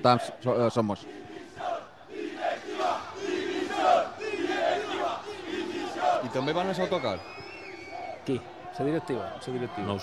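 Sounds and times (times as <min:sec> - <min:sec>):
speech: 0:00.0 - 0:01.7, 0:06.2 - 0:07.4, 0:08.2 - 0:10.0
football crowd roaring and chanting outside a stadium: 0:00.0 - 0:06.8.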